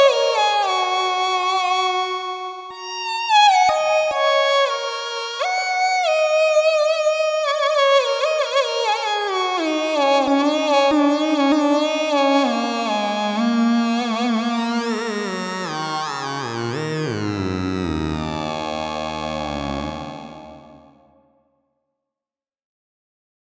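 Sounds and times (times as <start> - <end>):
erhu: 0.0 - 21.1.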